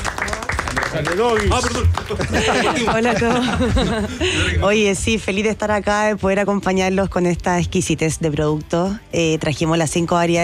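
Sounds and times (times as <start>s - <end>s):
applause for a guest: 0.0s - 3.5s
speech: 0.9s - 10.4s
laughter: 1.4s - 4.7s.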